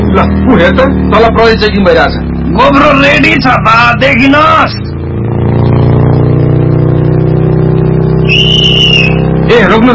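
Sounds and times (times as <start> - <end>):
motorcycle approaching at speed: 0.0 - 9.9
speech: 0.1 - 4.9, 8.3 - 9.9
shrill high sustained tone: 8.2 - 9.3.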